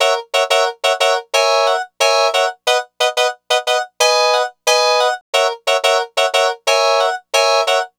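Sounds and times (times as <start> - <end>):
harpsichord lounge music in F sharp: 0.0 - 7.9.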